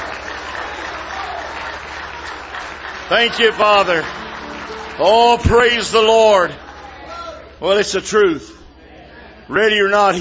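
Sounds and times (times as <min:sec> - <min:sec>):
church congregation applause: 0:00.0 - 0:07.5
faint crowd murmuring: 0:00.0 - 0:10.1
speech: 0:03.1 - 0:04.2, 0:05.0 - 0:06.6, 0:07.6 - 0:08.6, 0:09.5 - 0:10.1.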